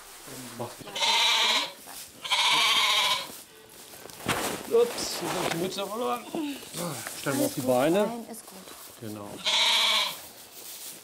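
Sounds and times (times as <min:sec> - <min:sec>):
speech: 0:00.2 - 0:01.2, 0:04.7 - 0:09.7
billy goat bleating while being put into a stall: 0:00.9 - 0:03.4, 0:06.1 - 0:06.8, 0:09.4 - 0:10.2.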